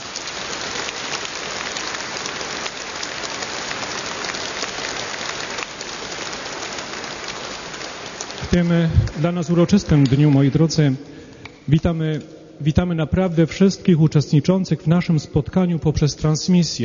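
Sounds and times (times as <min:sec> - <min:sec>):
loud applause: 0:00.0 - 0:11.3
speech: 0:08.5 - 0:11.1, 0:11.7 - 0:16.8.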